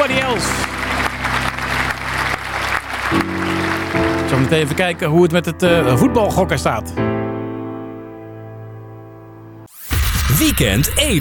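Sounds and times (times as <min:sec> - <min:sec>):
applause: 0:00.0 - 0:05.0
speech: 0:04.3 - 0:07.1, 0:10.4 - 0:11.1.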